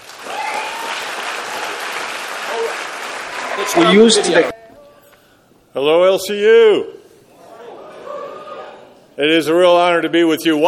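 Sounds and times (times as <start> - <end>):
audience applause: 0.0 - 4.5
speech: 3.6 - 4.5, 5.8 - 7.0, 9.2 - 10.6.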